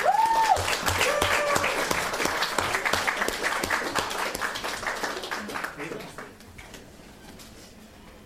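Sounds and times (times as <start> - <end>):
audience clapping for open mic performer: 0.0 - 6.5.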